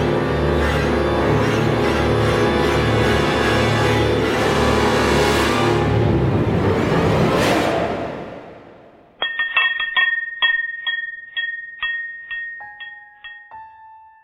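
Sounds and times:
loud street traffic: 0.1 - 8.8
small bells tinkling at an antique shop entrance: 9.2 - 14.2.

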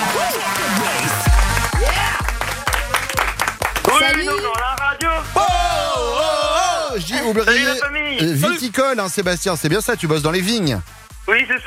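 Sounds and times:
applause for a young vineyard worker on a morning radio show: 0.0 - 5.5
music: 0.0 - 11.6
speech: 7.2 - 11.6.

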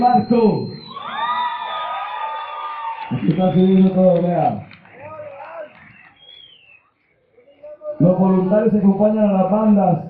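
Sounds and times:
speech: 0.0 - 0.8, 3.2 - 4.7, 8.0 - 10.0
crowd applauding and cheering: 0.8 - 6.8.

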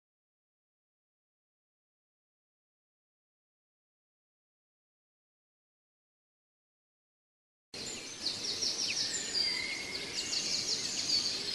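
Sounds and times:
bird song for training pet birds: 7.8 - 11.5.

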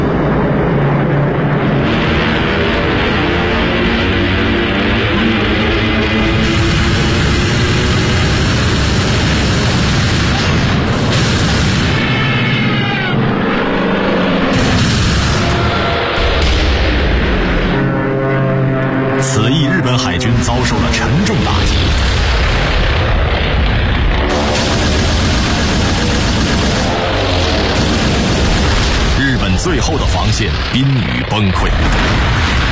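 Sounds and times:
US Navy and Japanese aircraft engines roaring over the Mariana Islands: 0.0 - 32.7
booming blasts in battle over the Mariana Islands: 1.6 - 18.0, 19.8 - 32.7
crackling gunfire in air battle over the Mariana Islands: 6.2 - 12.5, 14.5 - 17.2, 21.4 - 32.7.

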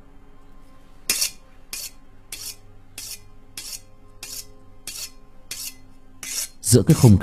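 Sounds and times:
knife being sharpened in a kitchen: 1.1 - 6.6
speech: 6.7 - 7.2.

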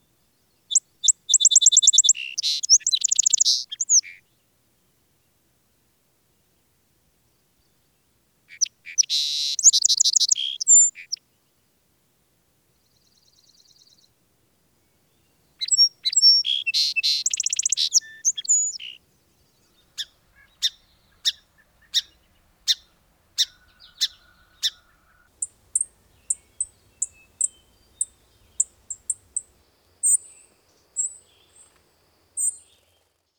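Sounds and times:
bird ticking calls: 0.7 - 4.2, 8.5 - 11.2, 15.6 - 33.1.

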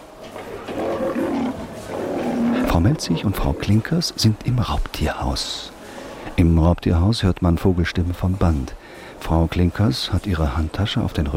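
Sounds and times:
lion roaring: 0.3 - 4.1
speech: 2.7 - 5.8, 6.4 - 11.3.

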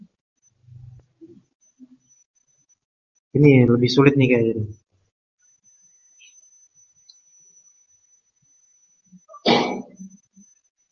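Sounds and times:
speech: 3.3 - 4.8
sneeze: 9.4 - 9.9.

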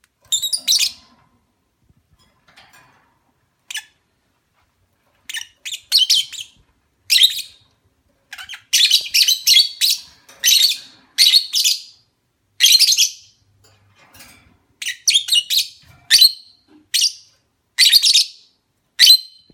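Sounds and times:
lovebird mating call chirps: 0.3 - 1.0, 5.3 - 7.6, 8.3 - 12.0, 12.6 - 13.4, 14.8 - 19.5.

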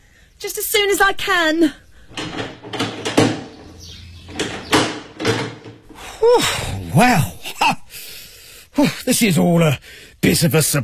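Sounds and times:
speech: 0.4 - 2.5, 6.3 - 7.8, 9.1 - 10.8
locked door rattled as someone tries to unlock it: 2.1 - 6.0
sharp clunks and scrapes of the door lock: 2.1 - 6.1.

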